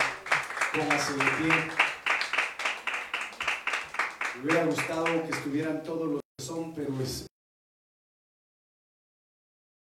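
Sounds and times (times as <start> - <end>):
audience clapping: 0.0 - 5.7
speech: 0.7 - 1.8, 4.4 - 7.3.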